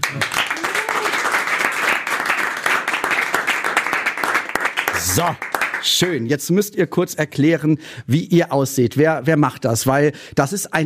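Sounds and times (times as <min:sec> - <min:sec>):
audience applause: 0:00.0 - 0:06.1
speech: 0:05.2 - 0:10.8.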